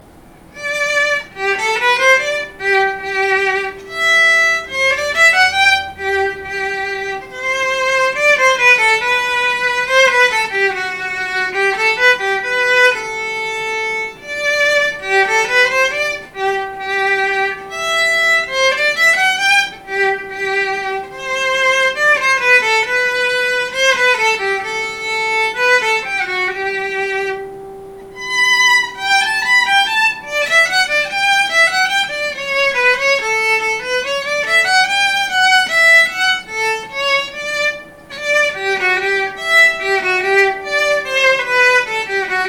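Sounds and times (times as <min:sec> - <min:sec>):
violin playing a minuet: 0:00.0 - 0:42.4.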